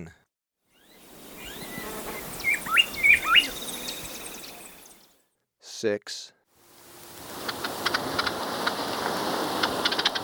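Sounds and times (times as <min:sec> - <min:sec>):
Bar-winged Wood-Wren whistling: 0:00.8 - 0:05.1
background hiss: 0:00.8 - 0:05.1, 0:06.6 - 0:10.2
speech: 0:05.8 - 0:06.4.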